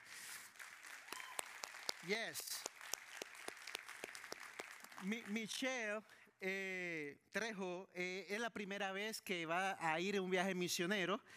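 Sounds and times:
audience applause: 0:00.0 - 0:05.6
speech: 0:02.0 - 0:02.7, 0:05.0 - 0:11.3.

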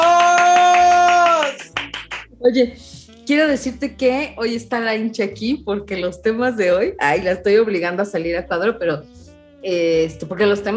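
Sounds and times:
applause: 0:00.0 - 0:02.3
speech: 0:02.4 - 0:10.7.

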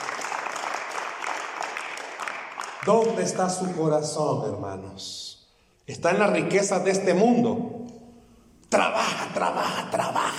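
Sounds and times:
church congregation applause: 0:00.0 - 0:04.2
speech: 0:02.8 - 0:05.3, 0:05.9 - 0:07.7, 0:08.7 - 0:10.0.

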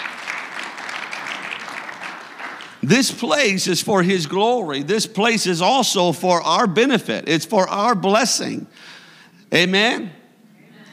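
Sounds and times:
audience clapping: 0:00.0 - 0:03.2
speech: 0:02.8 - 0:10.2.

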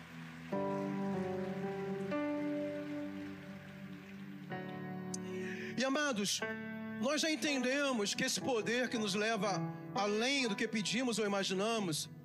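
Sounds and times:
audience applause: 0:00.0 - 0:05.6
speech: 0:05.8 - 0:12.2.

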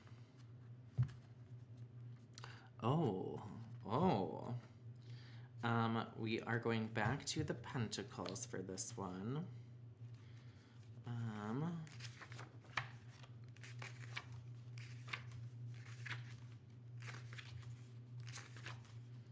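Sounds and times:
low steady hum: 0:00.0 - 0:19.2
stiff pages of a long-unused book flipping: 0:00.2 - 0:02.4, 0:10.8 - 0:19.2
speech: 0:02.8 - 0:04.7, 0:05.6 - 0:09.6.

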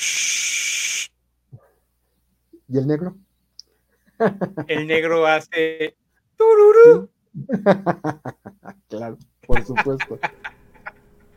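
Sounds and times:
voice imitating white noise with a breathy hiss: 0:00.0 - 0:01.1
speech: 0:02.7 - 0:03.3, 0:04.2 - 0:10.5
laughter: 0:04.2 - 0:05.1, 0:07.4 - 0:08.8, 0:09.5 - 0:11.3.

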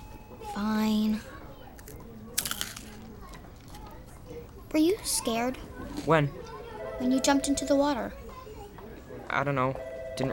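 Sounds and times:
eating crunchy potato chips: 0:01.8 - 0:04.0
speech: 0:04.7 - 0:06.4, 0:07.0 - 0:08.2, 0:09.3 - 0:10.3.

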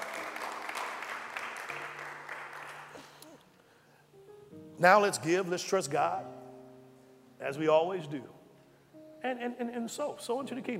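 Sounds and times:
large crowd applauding: 0:00.0 - 0:03.3
speech: 0:04.8 - 0:06.4, 0:07.4 - 0:08.3, 0:09.2 - 0:10.7.

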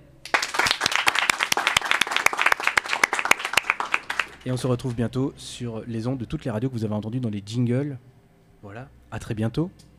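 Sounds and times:
small group applauding: 0:00.2 - 0:04.6
speech: 0:04.4 - 0:09.9.

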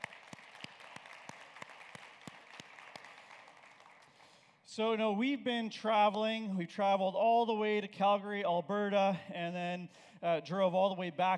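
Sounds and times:
audience applause: 0:00.0 - 0:04.6
speech: 0:04.8 - 0:11.3.

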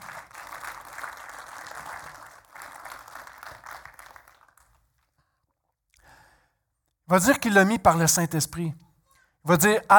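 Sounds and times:
audience applauding: 0:00.0 - 0:05.1
speech: 0:07.1 - 0:08.8, 0:09.4 - 0:09.9.

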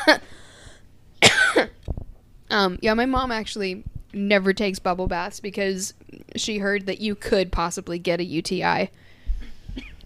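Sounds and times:
person coughing after choking: 0:00.0 - 0:00.3, 0:01.2 - 0:01.8, 0:09.4 - 0:10.0
speech: 0:00.0 - 0:00.3, 0:02.5 - 0:09.1.

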